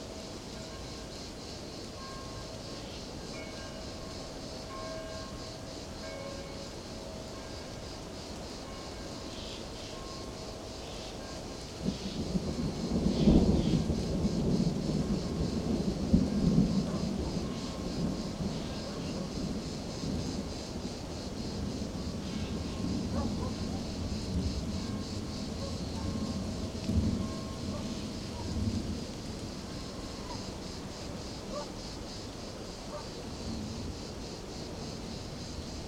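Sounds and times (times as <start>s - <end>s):
crickets in daytime: 0.0s - 35.8s
daytime thunder: 11.8s - 31.6s.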